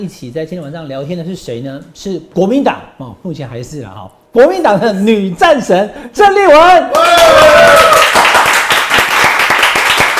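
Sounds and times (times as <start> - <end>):
speech: 0.0 - 8.0
applause: 6.9 - 10.1.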